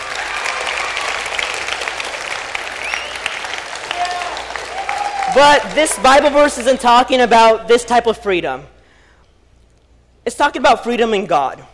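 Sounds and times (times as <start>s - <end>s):
audience clapping: 0.0s - 6.9s
speech: 5.4s - 8.8s, 10.3s - 11.7s.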